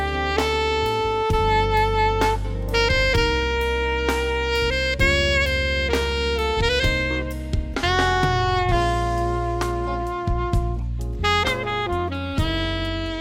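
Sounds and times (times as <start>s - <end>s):
alto sax smooth ballad: 0.0s - 13.1s.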